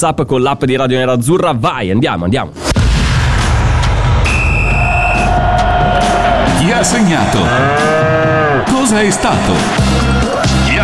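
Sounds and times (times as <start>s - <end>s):
speech: 0.0s - 2.8s, 6.6s - 10.8s
radio segment theme jingle: 2.6s - 10.8s.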